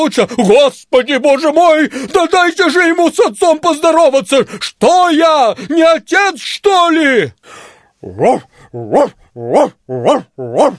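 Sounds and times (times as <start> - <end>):
speech: 0.0 - 10.7
huge black dog barking in a deep voice: 8.0 - 10.7.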